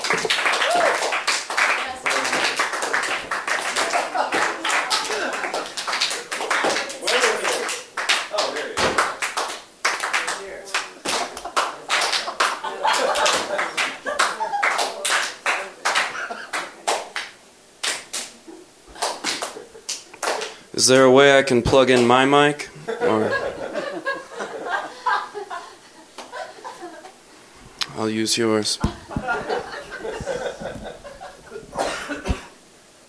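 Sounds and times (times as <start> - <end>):
audience slow clap: 0.0 - 18.4, 19.0 - 20.6, 28.8 - 32.5
speech: 0.1 - 0.8, 20.9 - 23.4, 28.0 - 29.0
laughter: 3.8 - 5.8, 12.3 - 15.0, 22.7 - 27.2, 28.9 - 32.5.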